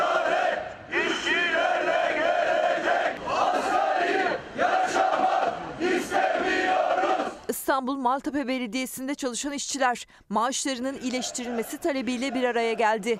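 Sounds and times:
protesting workers shouting slogans: 0.0 - 7.5, 10.9 - 13.1
speech: 7.7 - 13.1.

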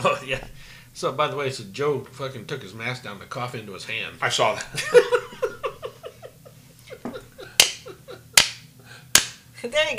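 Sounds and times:
speech: 0.0 - 5.4, 9.6 - 9.9
laughter: 4.7 - 8.4
sarcastic hand clapping: 7.6 - 9.4.

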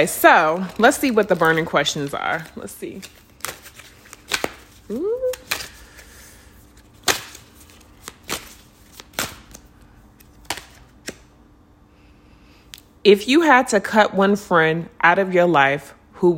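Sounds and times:
speech: 0.0 - 3.2, 4.9 - 5.4, 13.0 - 16.3
playing cards rustling: 0.0 - 11.3
playing cards snapping and slapping: 2.3 - 5.8, 6.9 - 11.3.

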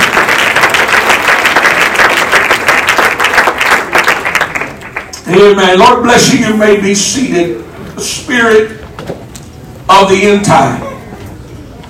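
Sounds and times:
audience clapping hands: 0.0 - 5.5
speech: 5.3 - 9.2, 10.0 - 10.9.

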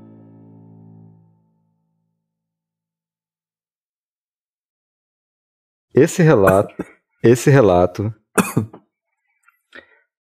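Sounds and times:
speech: 5.9 - 8.8
person coughing: 6.4 - 7.0, 8.4 - 8.9.

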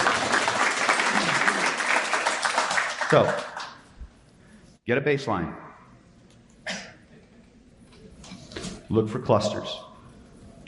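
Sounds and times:
audience applause: 0.0 - 3.8
speech: 3.1 - 3.5, 4.8 - 5.6, 8.9 - 9.8.

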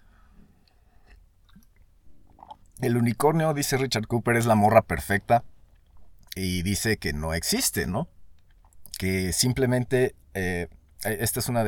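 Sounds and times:
sipping coffee: 1.0 - 2.8
speech: 2.8 - 5.5, 6.4 - 8.2, 9.0 - 11.6.

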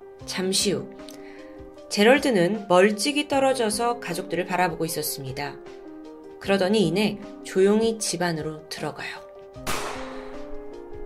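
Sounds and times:
speech: 0.2 - 1.2, 1.9 - 5.8, 6.4 - 9.2
gunshot: 9.6 - 10.6.

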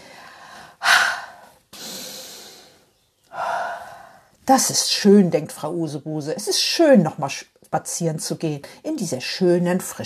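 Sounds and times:
woman breathing deeply in and out: 0.0 - 4.4
speech: 4.5 - 10.0.

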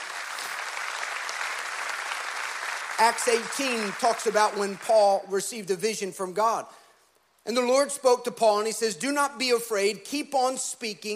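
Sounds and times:
audience applause: 0.0 - 5.0
speech: 3.0 - 6.8, 7.4 - 11.1.

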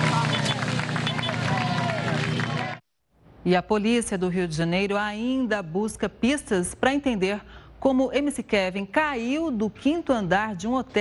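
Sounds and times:
crowd clapping at a burial: 0.0 - 2.8
speech: 3.4 - 10.9.

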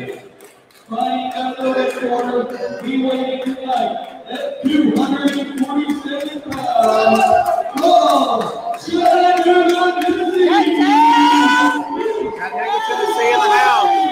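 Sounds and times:
speech: 0.9 - 7.4
crowd cheering wildly: 6.6 - 14.1.

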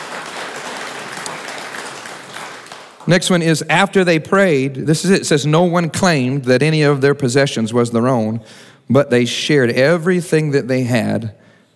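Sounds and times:
audience hand clapping: 0.0 - 3.2
speech: 3.1 - 11.4.

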